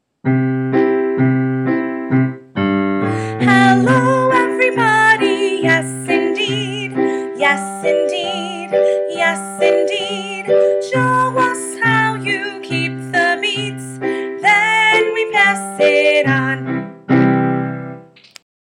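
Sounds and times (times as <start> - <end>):
hello song: 0.3 - 18.1.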